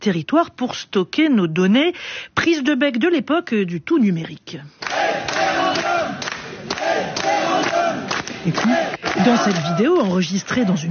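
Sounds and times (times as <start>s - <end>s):
speech: 0.0s - 5.4s, 8.4s - 10.8s
about 350 Rantigny residents chanting a one-word slogan in a municipal hall: 4.8s - 10.0s.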